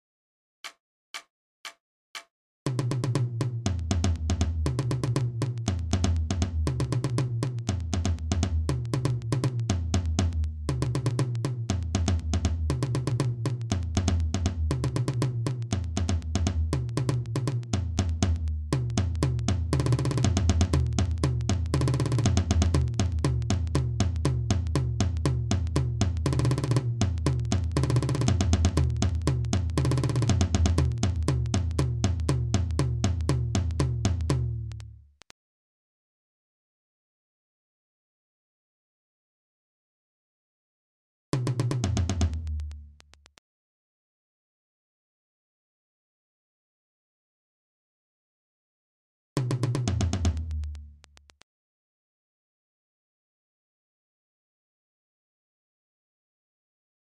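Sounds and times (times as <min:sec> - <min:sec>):
tom-tom drums: 0:00.6 - 0:34.9, 0:41.4 - 0:43.3, 0:49.4 - 0:51.4.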